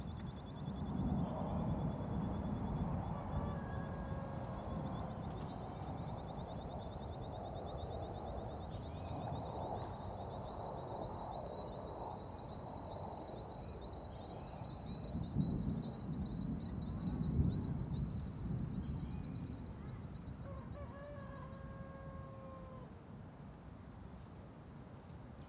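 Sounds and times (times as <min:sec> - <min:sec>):
cricket chirping: 0:00.0 - 0:25.1.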